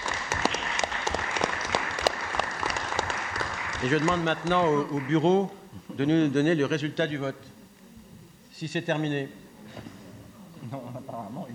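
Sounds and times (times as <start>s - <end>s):
audience applause: 0.0s - 5.6s
speech: 3.8s - 7.5s, 8.6s - 9.9s, 10.7s - 11.5s.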